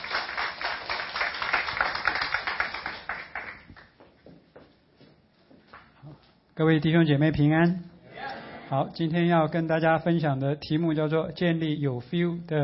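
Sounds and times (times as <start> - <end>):
audience clapping in welcome: 0.0 - 4.2
speech: 6.6 - 7.9, 8.7 - 12.6.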